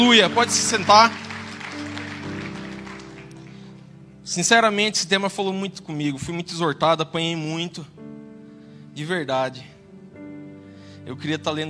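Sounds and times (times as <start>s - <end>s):
speech: 0.0s - 1.2s, 4.3s - 8.0s, 9.0s - 9.7s, 11.1s - 11.6s
audience applause: 0.0s - 3.8s
sustained low keyboard chords: 0.0s - 11.6s.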